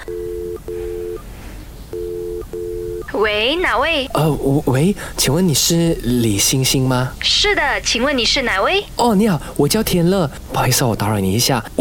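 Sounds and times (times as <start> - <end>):
telephone call ringing tone: 0.0 - 1.3, 1.9 - 3.2
speech: 3.1 - 11.8.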